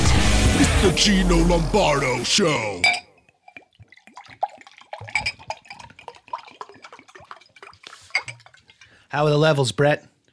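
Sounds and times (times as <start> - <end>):
speech: 0.8 - 3.0, 9.1 - 10.3
water pouring: 2.2 - 9.4
water dripping and splashing: 3.2 - 9.2.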